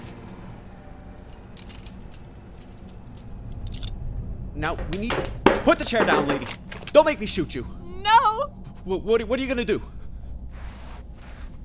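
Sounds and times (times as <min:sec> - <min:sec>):
handcuffs being unlocked and removed: 0:01.4 - 0:04.0
speech: 0:04.6 - 0:09.9.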